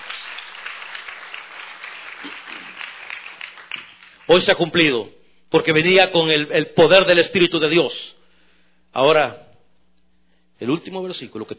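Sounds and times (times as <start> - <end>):
audience applause: 0.0 - 4.5
speech: 4.3 - 8.2, 8.9 - 9.4, 10.6 - 11.5.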